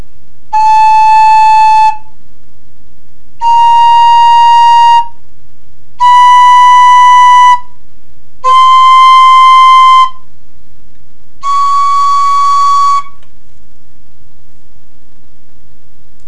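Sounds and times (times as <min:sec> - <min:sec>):
tenor flute: 0:00.5 - 0:02.2, 0:03.4 - 0:05.2, 0:06.0 - 0:07.8, 0:08.4 - 0:10.3, 0:11.4 - 0:13.2.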